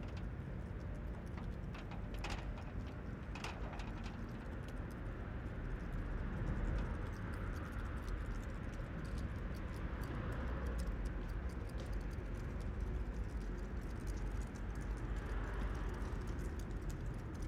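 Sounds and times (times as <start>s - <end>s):
wind in a town parking space: 0.0s - 17.4s.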